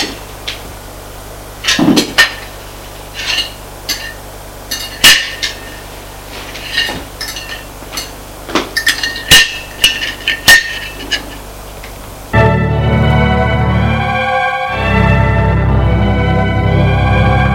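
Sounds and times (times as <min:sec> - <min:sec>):
faint steady hum: 0:00.0 - 0:17.5
cutlery clinking and scraping on dishes: 0:03.2 - 0:05.8, 0:06.5 - 0:11.4.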